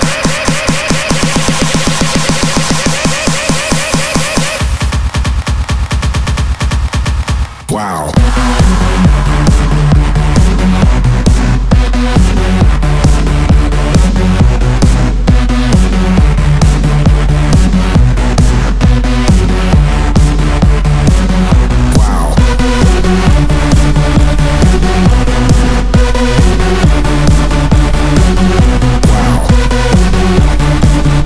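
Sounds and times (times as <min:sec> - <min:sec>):
EDM remake played on a Launchpad controller: 0:00.0 - 0:31.2.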